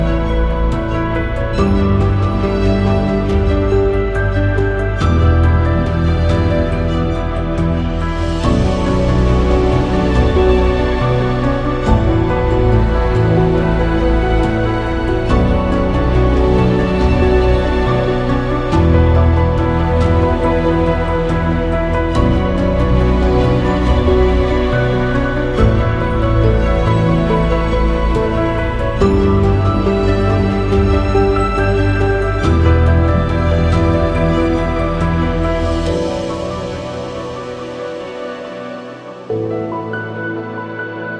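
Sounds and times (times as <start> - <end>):
documentary ambient music: 0.0 - 41.1.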